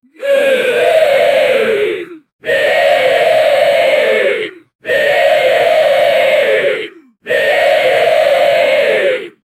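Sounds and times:
goblins chanting: 0.0 - 9.4.

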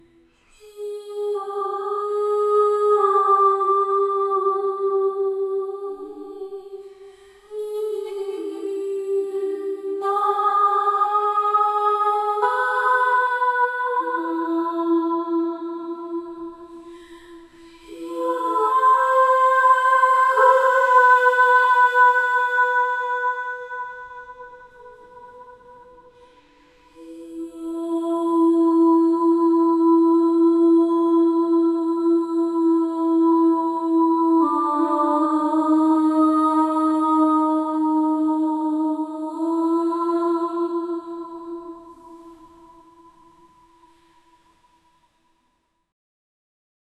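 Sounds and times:
woman singing slowly: 0.0 - 44.4.

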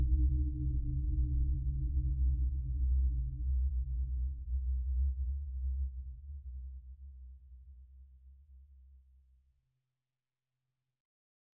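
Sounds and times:
cosmic ambience deep rumble: 0.0 - 5.2.

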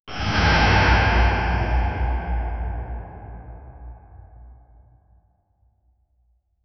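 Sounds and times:
loud cave ambience: 0.1 - 4.9.

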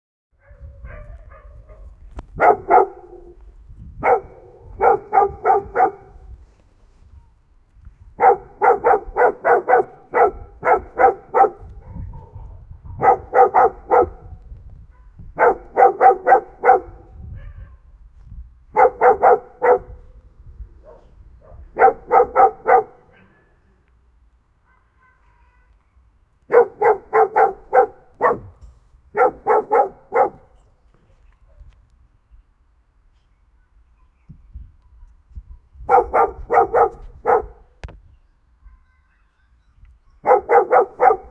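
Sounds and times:
dog barking: 0.4 - 3.4, 4.0 - 6.2, 8.2 - 14.3, 14.9 - 17.8, 18.7 - 20.1, 20.8 - 23.5, 24.6 - 25.5, 26.5 - 30.6, 35.9 - 37.7, 40.2 - 41.2.

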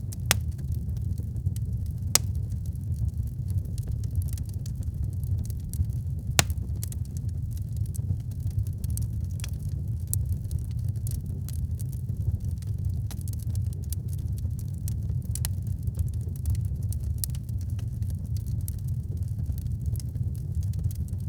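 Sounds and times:
fire: 0.0 - 21.2.

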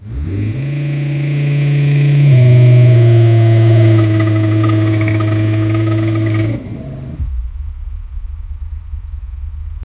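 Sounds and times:
Suzuki GSX 750F motorcycle accelerating: 0.0 - 7.3.

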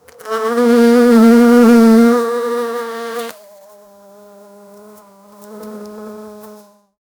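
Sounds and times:
single bee flying: 0.0 - 6.9.

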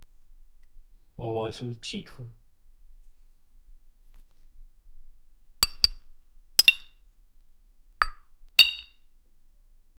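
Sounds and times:
glass bottle cap opening and closing: 5.6 - 6.0, 6.6 - 6.9, 8.0 - 8.9.

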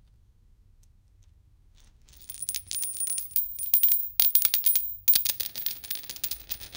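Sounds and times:
currency money sounds: 2.1 - 6.7.

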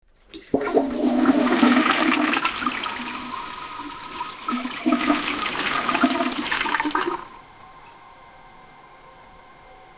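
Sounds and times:
high tech toilet flushing in a bathroom in Japan: 0.3 - 7.4.

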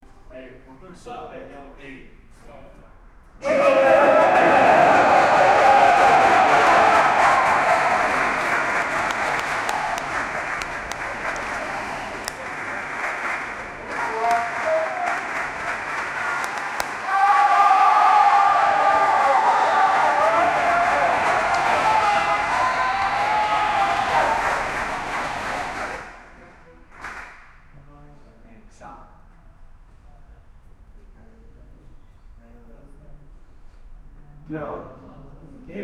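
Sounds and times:
live awards ceremony: 3.4 - 27.7.

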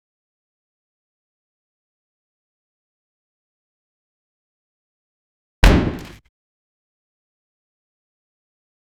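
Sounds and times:
heavy object slamming into the ground with a loud thud: 5.6 - 6.2.

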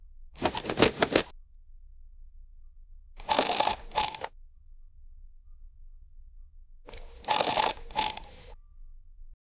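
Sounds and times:
card being flipped: 0.4 - 1.3, 6.9 - 8.5.

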